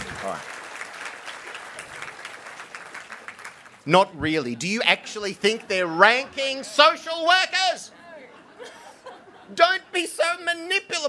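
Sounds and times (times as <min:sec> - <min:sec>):
audience applauding: 0:00.0 - 0:04.6
speech: 0:00.2 - 0:00.6, 0:03.9 - 0:08.0, 0:09.5 - 0:11.0
laughter: 0:04.4 - 0:10.5.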